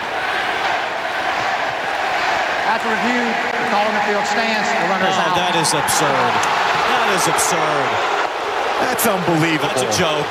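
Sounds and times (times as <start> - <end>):
stadium crowd chanting: 0.0 - 10.2
speech: 2.8 - 8.2, 8.8 - 10.2.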